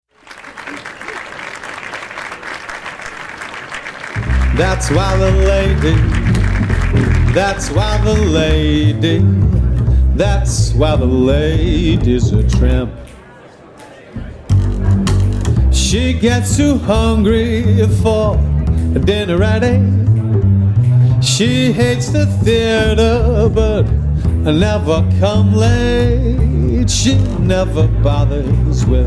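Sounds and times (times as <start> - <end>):
live jazz recording: 4.2 - 13.0, 14.4 - 29.0.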